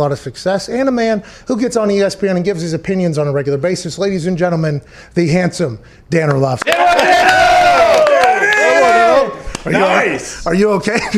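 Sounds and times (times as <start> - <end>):
speech: 0.0 - 7.1, 9.6 - 11.1
clapping and cheering: 6.6 - 10.1.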